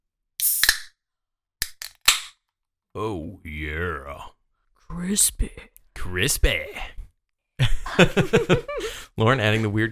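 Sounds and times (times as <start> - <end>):
can of Helles beer from Falling Knife cracked open: 0.4 - 1.0, 1.6 - 2.4
speech: 3.0 - 7.0, 8.0 - 9.9
laughter: 7.6 - 9.0.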